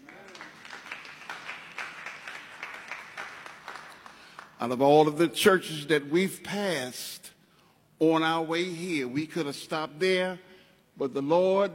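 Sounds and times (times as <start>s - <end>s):
audience applause: 0.0s - 4.6s
speech: 4.6s - 7.2s, 8.0s - 11.7s.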